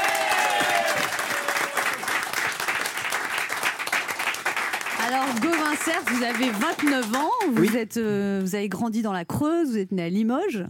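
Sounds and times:
audience applause: 0.0 - 7.8
speech: 5.1 - 10.6.

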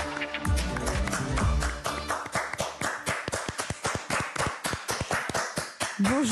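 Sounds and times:
hand clapping: 0.0 - 6.3.

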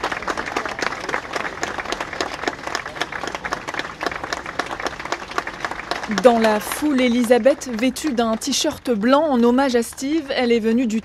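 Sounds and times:
crowd applause: 0.0 - 11.0
speech: 6.1 - 11.0.

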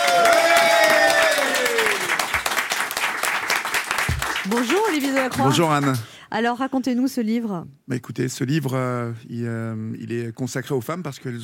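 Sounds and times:
studio audience applause: 0.0 - 6.1
speech: 4.5 - 11.4.

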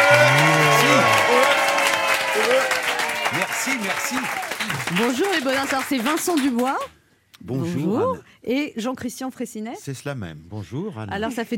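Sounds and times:
long low bellowing whoops: 0.0 - 3.6
large audience applause: 0.0 - 6.9
speech: 5.0 - 11.5.

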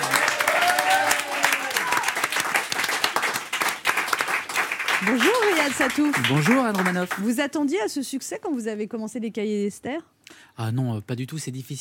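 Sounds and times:
cheering: 0.0 - 3.1
audience applause: 0.0 - 7.4
speech: 5.0 - 11.7.

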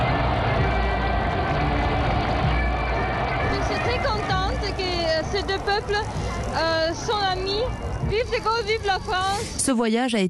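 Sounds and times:
crowd shouts: 0.0 - 8.0
huge crowd cheering an ovation: 0.0 - 9.1
speech: 5.3 - 10.2.

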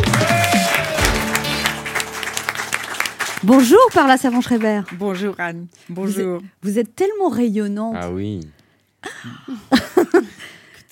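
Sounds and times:
talk show studio audience applauding: 0.0 - 5.5
speech: 3.4 - 10.3.

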